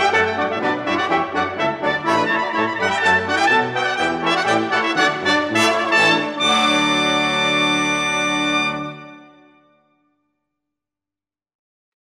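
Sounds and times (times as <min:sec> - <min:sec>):
bourrée in D: 0:00.0 - 0:09.2.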